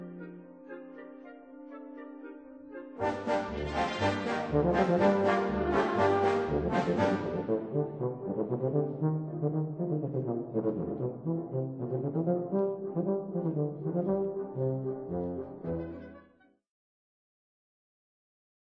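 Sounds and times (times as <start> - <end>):
wind band playing a tuba concerto: 3.0 - 16.2.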